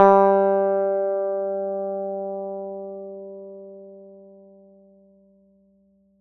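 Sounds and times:
plucked electric guitar note G3: 0:00.0 - 0:04.7.

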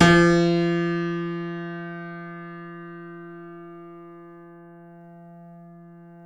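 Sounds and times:
piano C7 FF note: 0:00.0 - 0:04.6.

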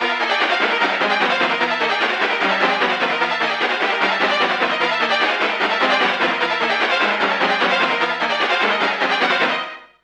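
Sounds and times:
string-like music: 0:00.0 - 0:10.0.

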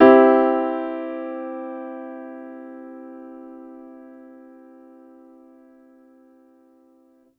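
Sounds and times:
grand piano major chord: 0:00.0 - 0:07.1.

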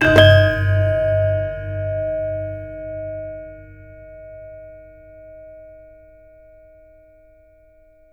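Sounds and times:
gamelan hit: 0:00.0 - 0:03.1.

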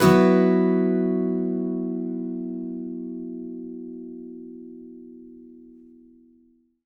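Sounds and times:
acoustic guitar B sus chord strummed up: 0:00.0 - 0:06.4.

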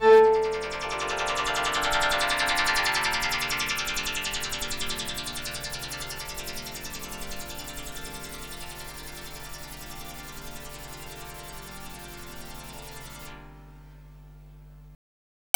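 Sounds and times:
ambient synth pad: 0:00.0 - 0:13.3.

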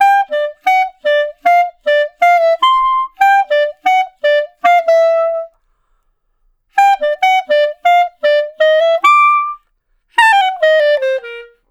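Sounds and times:
clarinet one shot melody: 0:00.0 - 0:05.7, 0:06.7 - 0:11.7.

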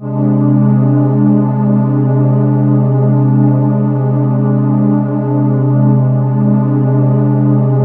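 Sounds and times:
ethereal ambient atmosphere: 0:00.0 - 0:07.8.

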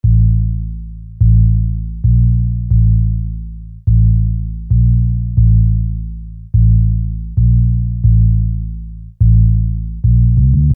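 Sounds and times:
sine bass: 0:00.0 - 0:10.7.

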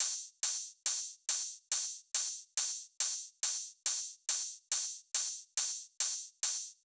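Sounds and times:
140 BPM drum loop with ride cymbal: 0:00.0 - 0:06.8.

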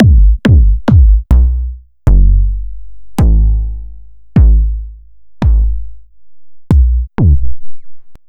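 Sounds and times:
kick drums: 0:00.0 - 0:02.4, 0:03.2 - 0:03.6, 0:04.4 - 0:04.8, 0:05.4 - 0:05.8, 0:06.7 - 0:07.5.

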